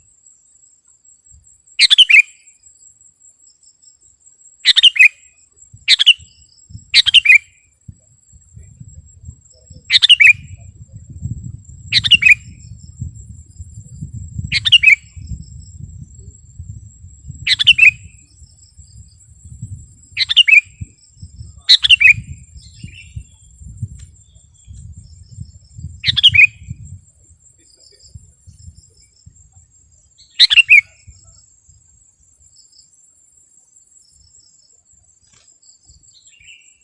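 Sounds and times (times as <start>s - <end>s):
Sooty-headed bulbul singing: 1.8s - 2.5s, 4.7s - 7.6s, 8.5s - 27.0s, 27.7s - 31.8s.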